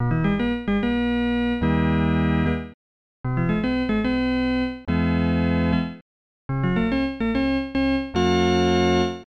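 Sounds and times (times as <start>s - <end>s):
organ music: 0.0s - 9.2s.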